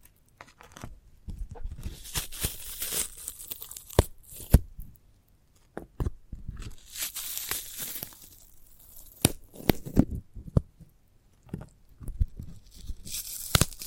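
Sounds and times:
sprouted coconut tearing and crunching: 0.0 - 4.7, 6.6 - 10.2, 12.2 - 13.8.

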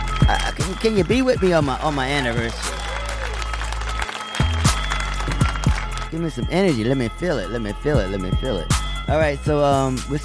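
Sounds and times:
audience clapping: 0.0 - 6.2
speech: 0.2 - 2.8, 6.1 - 10.2.

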